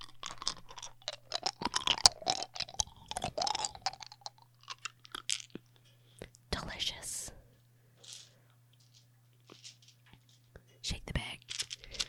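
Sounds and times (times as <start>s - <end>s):
chewing crunch of eating dice: 0.0s - 6.4s, 8.0s - 10.6s, 11.4s - 12.0s.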